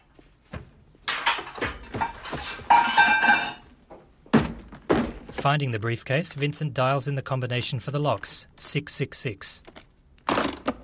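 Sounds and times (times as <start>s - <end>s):
dishes and utensils clattering in a kitchen cupboard: 1.0s - 3.7s
speech: 5.4s - 9.8s.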